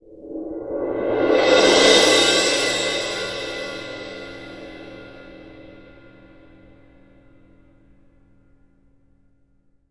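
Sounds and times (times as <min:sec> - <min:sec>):
Synclavier crash cymbal: 0:00.3 - 0:08.2.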